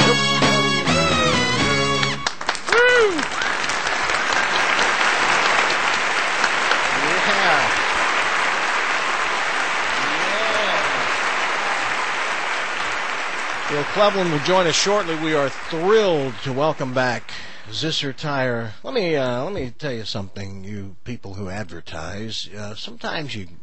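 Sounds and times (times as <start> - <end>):
music: 0.0 - 2.4
audience applause for an orchestra: 0.0 - 17.7
cheering: 2.3 - 17.2
speech: 14.0 - 23.6.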